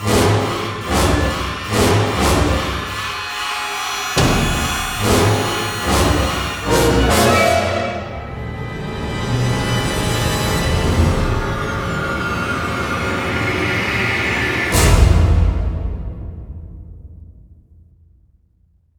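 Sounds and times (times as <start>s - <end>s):
horror stinger: 0.0s - 17.6s.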